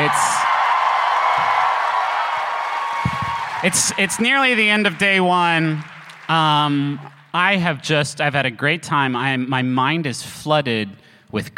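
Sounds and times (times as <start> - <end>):
high whoop: 0.0 - 4.5
audience cheering and applause: 0.0 - 7.6
speech: 3.6 - 11.5.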